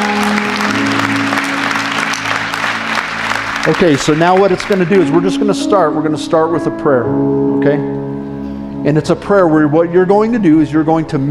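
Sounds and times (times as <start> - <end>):
audience clapping: 0.0 - 5.8
speech: 3.7 - 8.1, 8.8 - 11.2.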